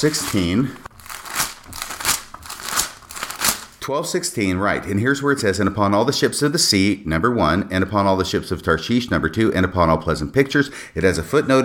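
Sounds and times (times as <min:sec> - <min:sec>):
speech: 0:00.0 - 0:00.9, 0:03.9 - 0:11.6
scripture book pages rustling and turning: 0:00.0 - 0:03.8.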